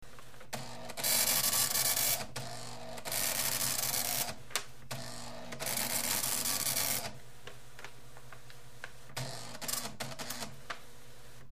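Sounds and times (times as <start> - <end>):
printer: 0.1 - 11.5.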